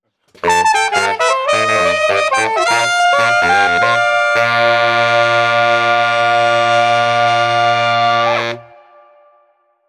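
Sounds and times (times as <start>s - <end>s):
New Orleans street brass band playing: 0.4s - 9.0s.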